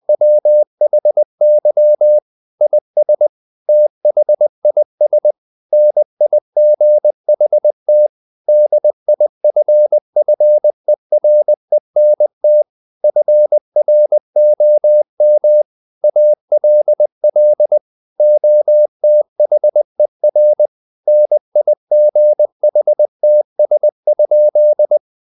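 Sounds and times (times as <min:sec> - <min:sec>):
morse code: 0:00.1 - 0:25.0.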